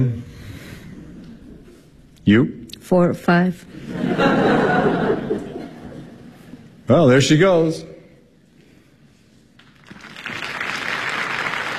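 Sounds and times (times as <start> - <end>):
speech: 0.0 - 0.3, 2.3 - 5.5, 6.9 - 7.9
laughter: 3.7 - 6.7
audience applause for a third-act entrance in a stage show: 9.6 - 11.7.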